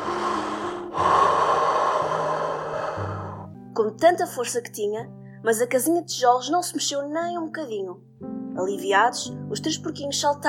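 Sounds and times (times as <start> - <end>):
person imitating a wolf blowing hard: 0.0 - 3.6
speech: 3.8 - 10.4.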